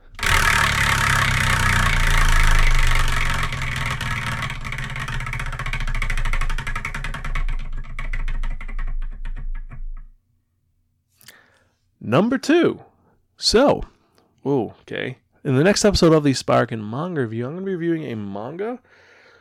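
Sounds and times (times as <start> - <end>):
low droning background: 0.0 - 8.2
prize wheel spun to pick a manga, ticking: 0.0 - 10.1
speech: 12.1 - 19.0.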